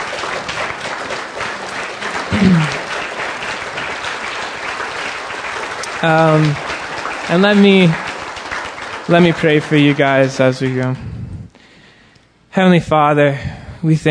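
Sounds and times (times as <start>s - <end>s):
church audience applause: 0.0s - 11.0s
speech: 2.4s - 2.8s, 6.0s - 6.7s, 7.3s - 8.0s, 9.1s - 11.1s, 12.5s - 14.1s.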